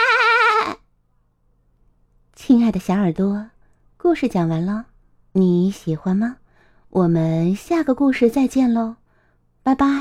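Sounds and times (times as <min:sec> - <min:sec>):
sheep bleating: 0:00.0 - 0:00.8
speech: 0:02.4 - 0:09.0, 0:09.6 - 0:09.9.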